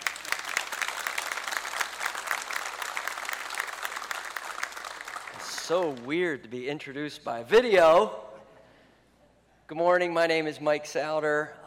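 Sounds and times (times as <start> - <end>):
audience applause: 0.0 - 6.1
speech: 5.7 - 8.2, 9.7 - 11.6.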